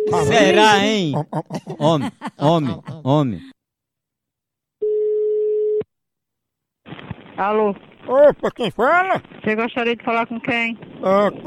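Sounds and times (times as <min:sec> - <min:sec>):
phone line noise as the call connects: 0:00.0 - 0:00.6
laughter: 0:00.0 - 0:03.5, 0:08.1 - 0:09.2
speech: 0:00.1 - 0:03.5, 0:07.4 - 0:11.4
telephone ringback tone on outgoing call: 0:04.8 - 0:05.8.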